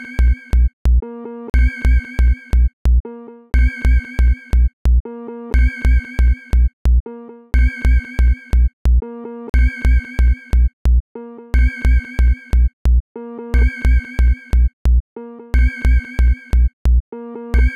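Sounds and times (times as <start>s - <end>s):
sine wave tone: 0.0s - 0.8s, 1.5s - 2.8s, 3.6s - 4.8s, 5.5s - 6.8s, 7.6s - 8.8s, 9.5s - 10.8s, 11.6s - 12.8s, 13.5s - 14.8s, 15.6s - 16.8s, 17.6s - 17.7s.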